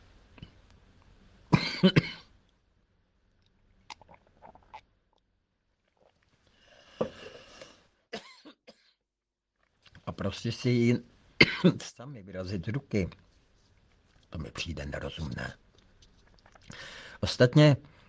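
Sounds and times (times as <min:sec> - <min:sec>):
speech: 0:01.8 - 0:02.1, 0:10.3 - 0:13.2, 0:14.3 - 0:15.6, 0:17.2 - 0:17.9
soft gulps and mouth noises: 0:02.4 - 0:08.0, 0:09.6 - 0:10.2, 0:12.9 - 0:17.2
person slurping and swallowing a drink: 0:03.4 - 0:07.8, 0:15.6 - 0:16.9.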